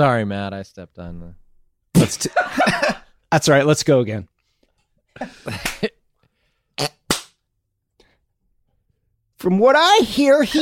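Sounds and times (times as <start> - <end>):
speech: 0.0 - 1.4, 2.0 - 4.3, 5.2 - 6.0, 6.8 - 7.0, 9.4 - 10.6
hand clap: 5.5 - 5.9, 7.1 - 7.4.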